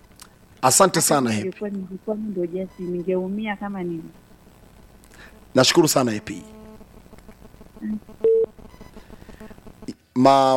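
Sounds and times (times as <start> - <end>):
speech: 0.6 - 4.2, 5.6 - 6.6, 7.8 - 8.1, 10.2 - 10.5
telephone beeps of a caller ringing into a radio studio: 2.6 - 3.2, 8.2 - 9.0.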